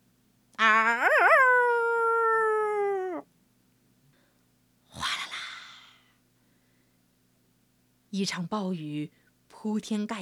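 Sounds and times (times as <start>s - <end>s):
hyena howling: 0.6s - 3.2s
speech: 8.2s - 10.2s.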